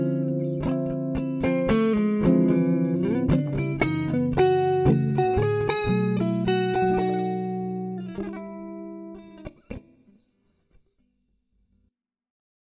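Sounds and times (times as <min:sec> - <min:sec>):
autumn-themed music mix: 0:00.0 - 0:09.3.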